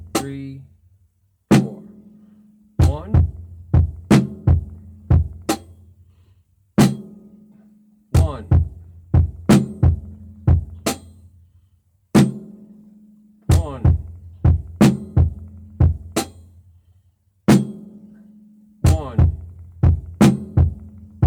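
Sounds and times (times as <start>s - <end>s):
drum beat: 0.0s - 0.5s, 1.5s - 1.8s, 2.8s - 5.8s, 6.8s - 7.1s, 8.2s - 11.2s, 13.5s - 16.5s, 17.5s - 18.0s, 18.8s - 21.2s.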